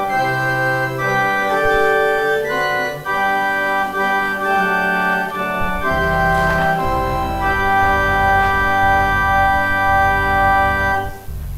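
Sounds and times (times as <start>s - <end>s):
organ interlude during the offering: 0.0s - 11.3s.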